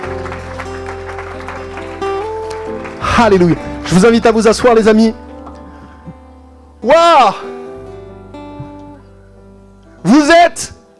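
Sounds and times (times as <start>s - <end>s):
church congregation applauding: 0.0s - 4.6s
sustained musical chords: 0.0s - 10.9s
speech: 3.2s - 5.2s, 6.8s - 7.5s, 10.2s - 10.8s.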